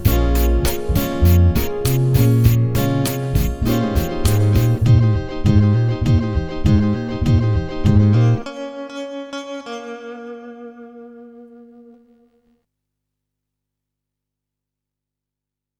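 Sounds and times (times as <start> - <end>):
Brazilian bass grooves: 0.0 - 8.4.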